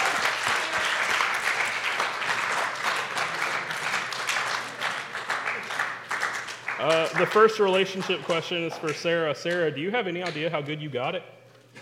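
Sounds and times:
audience applause: 0.0 - 9.0
speech: 6.8 - 11.4.

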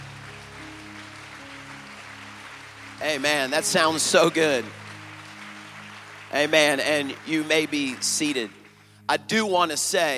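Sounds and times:
audience clapping: 0.0 - 10.1
low sustained keyboard or organ notes: 0.0 - 10.1
speech: 3.0 - 4.8, 6.3 - 10.1.

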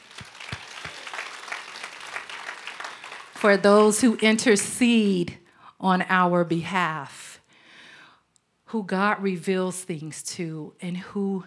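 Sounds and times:
audience applauding: 0.0 - 4.1
speech: 3.4 - 7.2, 8.7 - 11.4.

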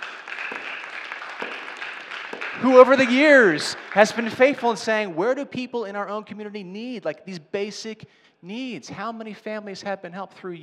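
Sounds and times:
audience applause: 0.0 - 4.6
speech: 2.6 - 10.6.

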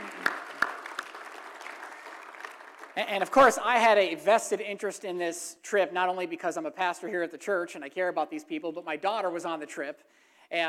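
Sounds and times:
church audience applause: 0.0 - 3.5
speech: 3.0 - 10.6.

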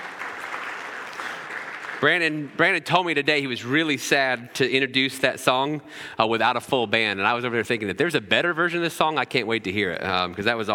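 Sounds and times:
round of applause: 0.0 - 2.5
speech: 2.0 - 10.7.

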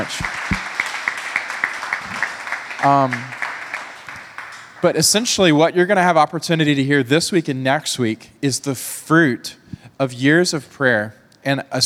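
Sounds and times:
audience applause: 0.0 - 5.0
speech: 2.8 - 3.4, 4.8 - 11.8.

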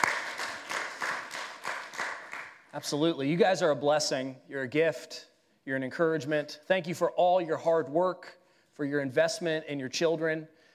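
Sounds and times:
audience clapping for mothers: 0.0 - 2.8
speech: 2.8 - 10.6.

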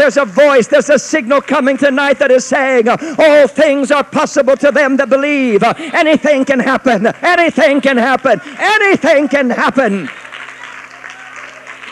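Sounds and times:
audience clapping: 0.0 - 3.0, 8.1 - 11.9
speech: 0.0 - 10.3.

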